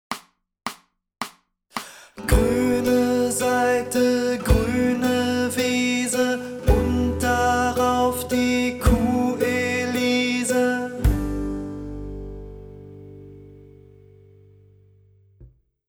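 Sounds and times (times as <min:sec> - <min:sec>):
green guitar string: 0:02.2 - 0:15.6.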